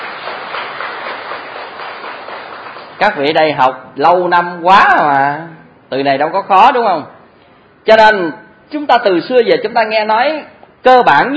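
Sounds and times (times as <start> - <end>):
audience applause: 0.0 - 3.0
speech: 3.0 - 7.2, 7.8 - 11.3.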